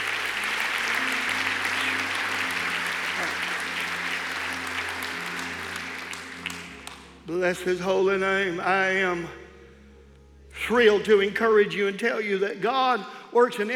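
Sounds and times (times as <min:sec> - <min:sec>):
audience clapping hands: 0:00.0 - 0:07.4
speech: 0:07.3 - 0:09.4, 0:10.7 - 0:13.7.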